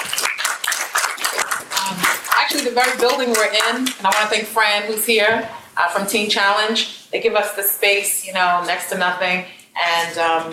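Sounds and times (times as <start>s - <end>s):
audience applause: 0.0s - 3.9s
speech: 2.7s - 10.5s.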